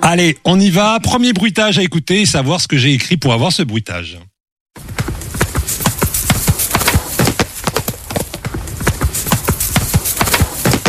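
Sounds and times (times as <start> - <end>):
speech: 0.1 - 4.3
horse galloping: 4.8 - 10.8.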